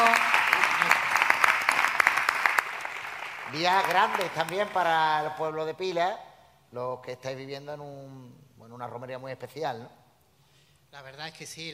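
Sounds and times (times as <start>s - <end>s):
applause: 0.0s - 5.3s
speech: 3.5s - 10.0s, 10.9s - 11.7s.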